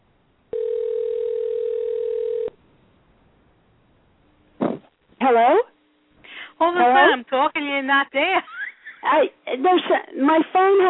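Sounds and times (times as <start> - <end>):
electronic ringback tone from an outgoing phone call: 0.5 - 2.6
speech: 5.2 - 5.7, 6.6 - 10.8.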